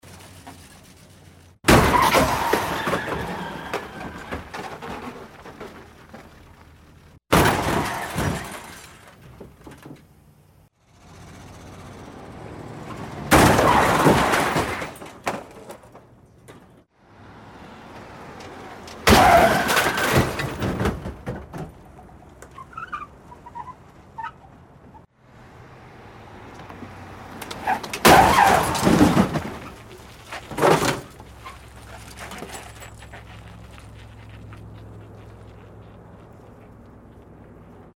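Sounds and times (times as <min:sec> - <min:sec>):
car collision: 0:01.6 - 0:06.2, 0:07.3 - 0:10.2, 0:12.8 - 0:16.9, 0:18.2 - 0:21.9, 0:27.3 - 0:31.2.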